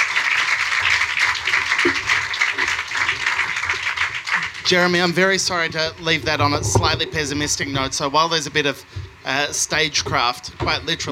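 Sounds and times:
audience applause: 0:00.0 - 0:06.1
speech: 0:04.7 - 0:11.0.

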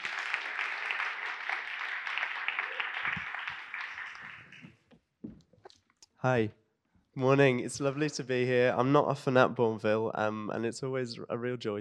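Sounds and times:
crowd applauding: 0:00.0 - 0:04.9
speech: 0:06.2 - 0:06.6, 0:07.2 - 0:11.7.

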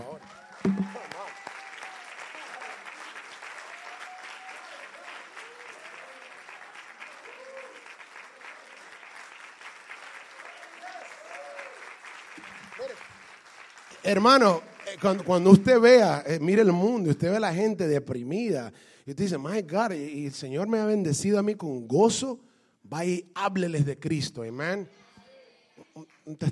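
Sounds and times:
audience applause: 0:00.0 - 0:16.0
speech: 0:14.1 - 0:25.0, 0:26.0 - 0:26.5.

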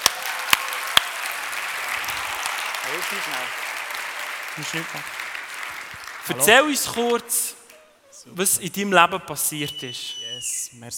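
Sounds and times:
audience applause: 0:00.0 - 0:07.2
speech: 0:03.0 - 0:03.7, 0:04.6 - 0:05.2, 0:06.3 - 0:07.6, 0:08.2 - 0:10.9.

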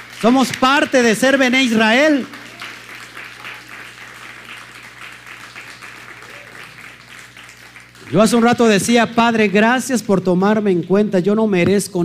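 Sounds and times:
audience applauding: 0:00.0 - 0:09.9
speech: 0:00.2 - 0:02.4, 0:08.1 - 0:12.0.

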